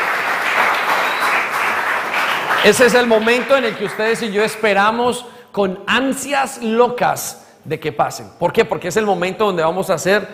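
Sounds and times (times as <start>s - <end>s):
crowd applause: 0.0s - 4.3s
speech: 2.6s - 10.3s.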